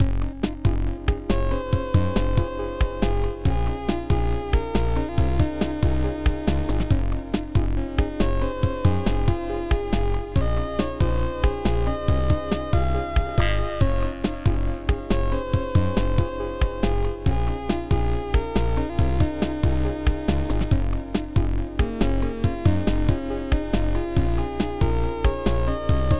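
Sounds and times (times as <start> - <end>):
keygen music: 0.0 - 26.1.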